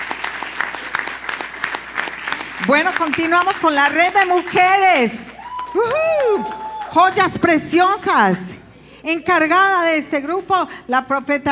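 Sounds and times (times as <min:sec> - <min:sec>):
loud applause: 0:00.0 - 0:07.6
speech: 0:02.6 - 0:11.5.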